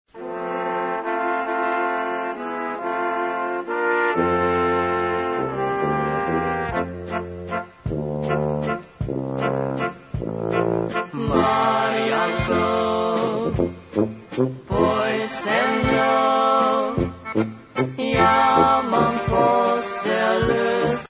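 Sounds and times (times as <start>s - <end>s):
waltz music: 0.2s - 21.0s.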